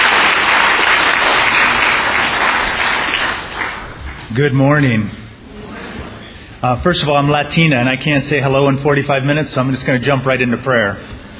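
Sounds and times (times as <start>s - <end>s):
audience applause welcoming a guest speaker: 0.0s - 4.3s
speech: 4.4s - 5.2s, 6.6s - 11.1s.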